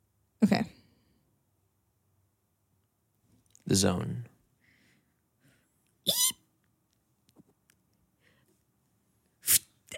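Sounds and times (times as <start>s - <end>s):
speech: 0.4s - 0.8s, 3.7s - 4.3s
voice imitating a squeaky shoe: 6.0s - 6.4s.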